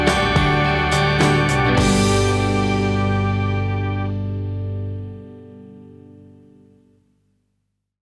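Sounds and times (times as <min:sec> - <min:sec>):
love song: 0:00.0 - 0:04.5.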